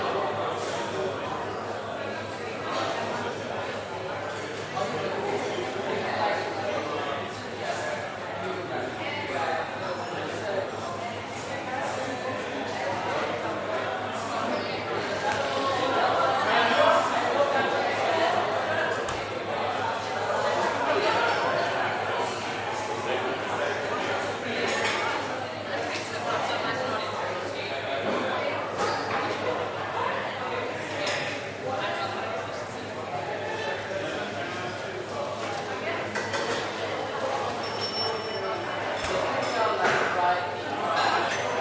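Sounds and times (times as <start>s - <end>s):
busy cafe chatter of many voices: 0.0s - 41.5s
clinks and taps of dishes: 37.4s - 40.1s.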